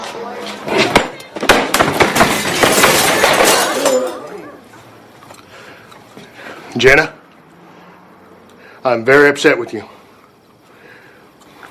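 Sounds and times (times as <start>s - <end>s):
chair thrown across a room, crashing: 0.6s - 4.4s
speech: 6.8s - 7.2s, 8.8s - 10.0s.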